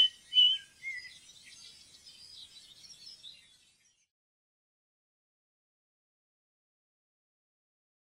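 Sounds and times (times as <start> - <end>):
ring ouzel whistled calls and twittering: 0.0 - 4.1.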